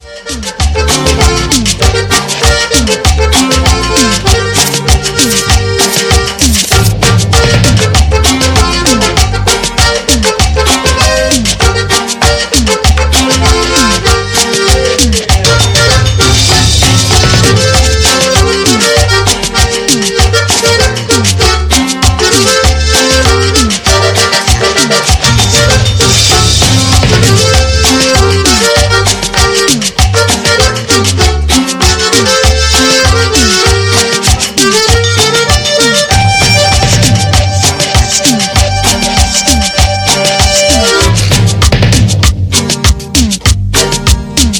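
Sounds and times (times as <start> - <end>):
cumbia music: 0.0 - 44.5.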